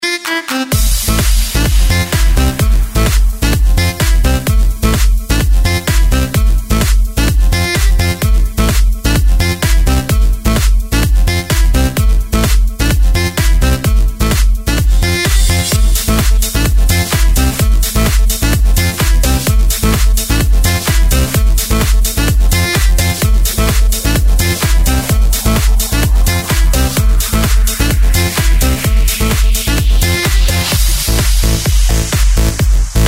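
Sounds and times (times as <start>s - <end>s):
saxophone: 0.0s - 32.9s.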